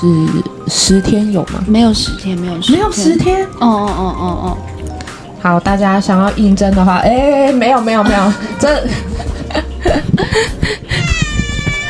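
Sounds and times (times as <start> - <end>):
speech: 0.0 - 4.7, 5.4 - 11.1
angry cat meowing and yowling: 8.0 - 9.6, 10.9 - 11.8
laughter: 8.1 - 10.8.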